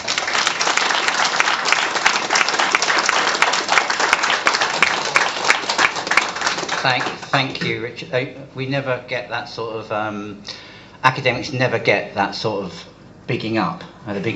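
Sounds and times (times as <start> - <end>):
audience applause welcoming a conference speaker: 0.0 - 7.6
speech: 6.8 - 14.3.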